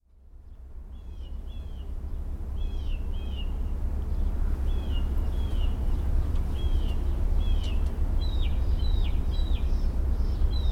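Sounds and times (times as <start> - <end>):
mockingbird singing: 2.6 - 10.7.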